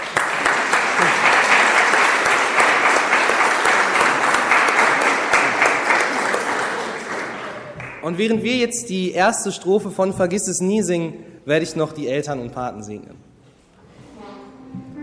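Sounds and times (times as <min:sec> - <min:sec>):
audience applauding: 0:00.0 - 0:08.2
speech: 0:08.1 - 0:13.3.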